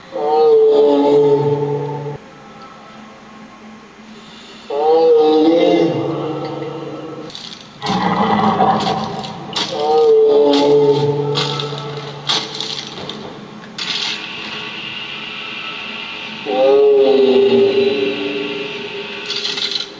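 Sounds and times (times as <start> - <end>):
howling: 0.1 - 2.2, 4.7 - 12.3, 15.4 - 19.2.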